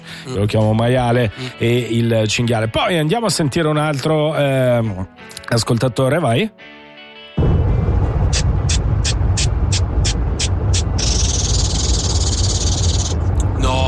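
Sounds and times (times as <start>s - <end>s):
speech: 0.2s - 6.8s
broad rushing noise: 7.4s - 13.8s
lawn sprinkler hissing: 9.4s - 13.3s.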